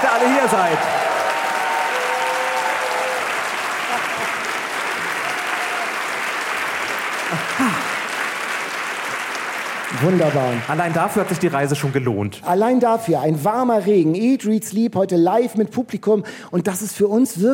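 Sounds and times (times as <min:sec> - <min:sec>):
full hall audience applauding: 0:00.0 - 0:12.3
speech: 0:00.2 - 0:01.0, 0:10.0 - 0:17.5
faint voices and whoops: 0:00.7 - 0:04.5, 0:05.1 - 0:06.1.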